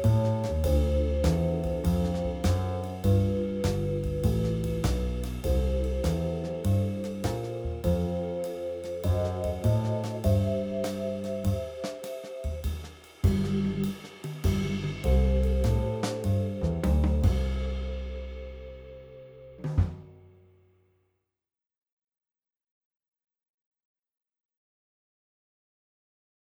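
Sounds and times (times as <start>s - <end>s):
slow walking bass backing: 0.0s - 20.0s.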